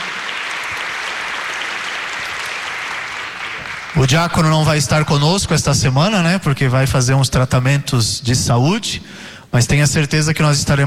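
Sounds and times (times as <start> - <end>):
crowd applause: 0.0 - 4.8
speech: 3.9 - 10.8.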